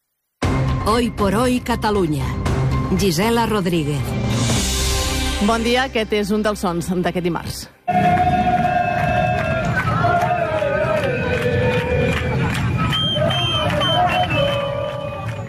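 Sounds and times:
speech: 0.8 - 4.3, 5.4 - 8.1
crowd at FC Barcelona's celebration parade through the city streets: 7.9 - 15.4.

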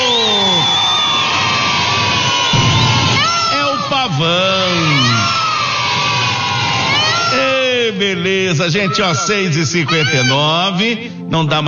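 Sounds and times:
audience clapping and cheering: 0.0 - 7.9
speech: 8.6 - 11.6.

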